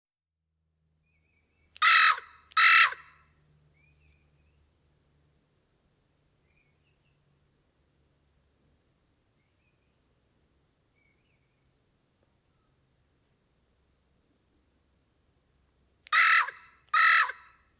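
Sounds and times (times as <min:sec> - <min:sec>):
carrion crow Corvus corone rasping caws: 0:01.8 - 0:03.2, 0:16.1 - 0:17.6.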